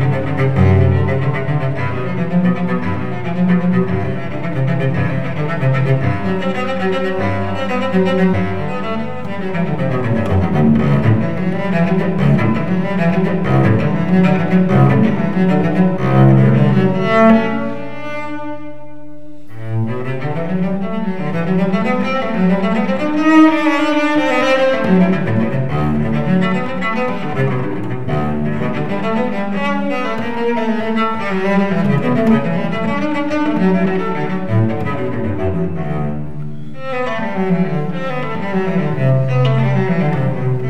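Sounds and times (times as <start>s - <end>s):
unaccompanied cello suite: 0.0s - 40.6s.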